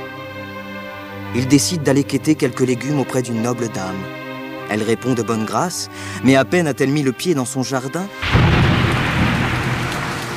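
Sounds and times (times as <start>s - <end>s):
speech: 1.3s - 8.6s
heavy rain: 8.2s - 10.3s.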